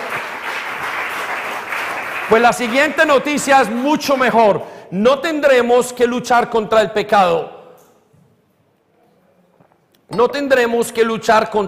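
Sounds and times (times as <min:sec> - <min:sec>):
crowd applauding: 0:00.0 - 0:03.5
speech: 0:02.3 - 0:07.6, 0:10.1 - 0:11.6.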